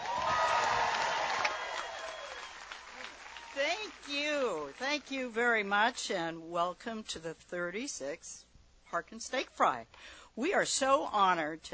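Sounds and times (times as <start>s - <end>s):
scattered whoops: 0.0s - 3.6s
crowd applause at the Harkin Steak Fry: 0.0s - 4.8s
speech: 5.0s - 11.7s.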